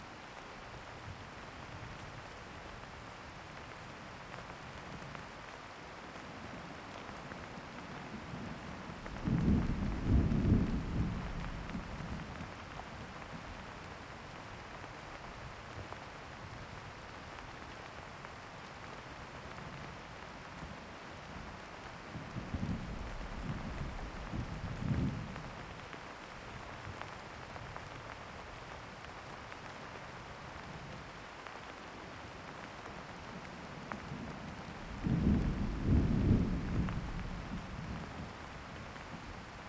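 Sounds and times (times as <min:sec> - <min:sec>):
thunderstorm: 0:08.2 - 0:12.5, 0:22.1 - 0:25.8, 0:34.1 - 0:38.4.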